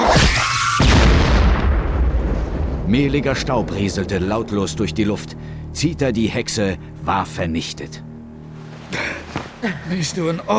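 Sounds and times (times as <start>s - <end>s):
gunshot fired inside a hut at a monster: 0.0s - 2.8s
speech: 2.9s - 8.1s, 8.9s - 10.5s.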